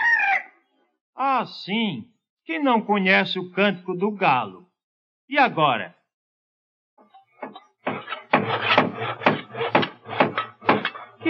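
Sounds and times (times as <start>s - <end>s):
speech: 1.3s - 4.6s, 5.3s - 6.0s
saw or file rasping on wood: 7.4s - 11.2s.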